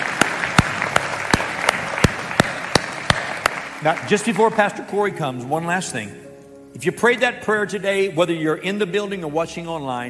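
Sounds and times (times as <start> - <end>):
church congregation applauding to welcome new believers: 0.0 - 5.4
speech: 3.8 - 6.2, 6.8 - 10.0.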